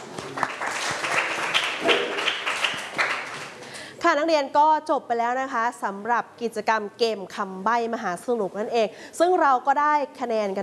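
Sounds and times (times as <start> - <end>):
group of students clapping: 0.0 - 3.7
speech: 4.1 - 10.6.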